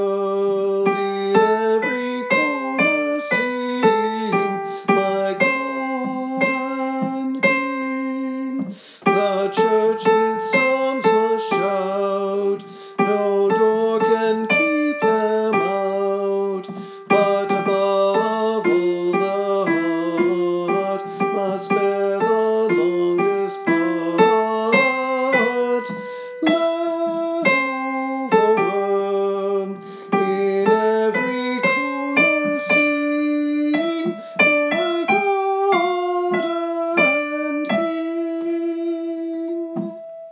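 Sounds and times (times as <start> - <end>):
soprano singing: 0.0 - 40.2.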